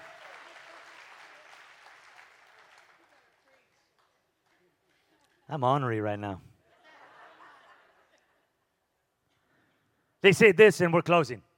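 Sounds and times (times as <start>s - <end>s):
audience clapping: 0.0s - 5.1s
speech: 5.5s - 6.5s, 10.2s - 11.5s
laughter: 6.7s - 8.5s.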